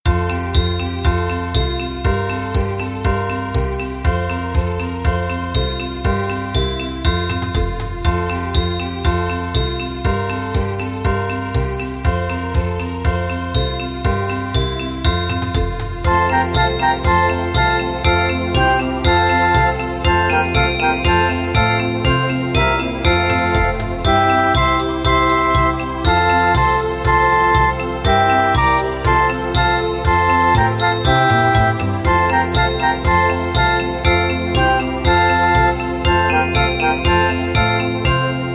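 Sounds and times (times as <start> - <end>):
German Christmas children's song backing track: 0.0 - 38.5.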